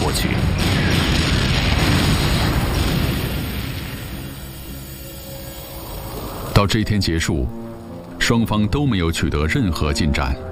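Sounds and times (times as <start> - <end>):
T-34 tank explosion: 0.0 - 5.0
speech: 6.6 - 7.6, 8.3 - 10.4.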